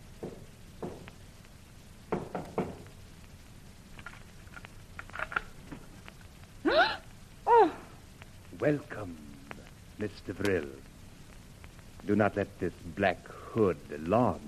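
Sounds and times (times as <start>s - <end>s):
knocking on a door: 0.2s - 1.1s, 2.1s - 2.9s
speech: 8.6s - 9.2s, 10.0s - 10.9s, 12.0s - 14.4s.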